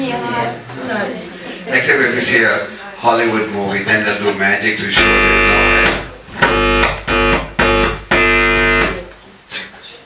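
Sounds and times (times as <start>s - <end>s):
speech: 0.1s - 7.0s
loud harsh distorted buzzing alarm blasts: 5.0s - 9.1s.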